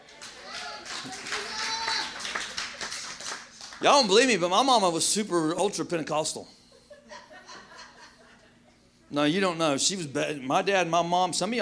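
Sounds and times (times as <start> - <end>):
hands clapping: 0.0 - 4.1
speech: 3.8 - 6.6, 9.1 - 11.6
laughter: 6.6 - 9.1.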